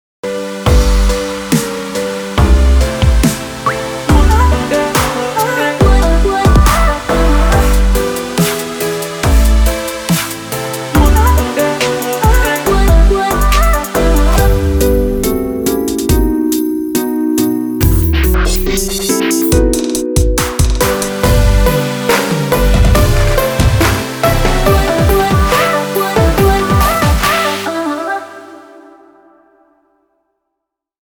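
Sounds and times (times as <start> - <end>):
synths: 0.3 - 29.8.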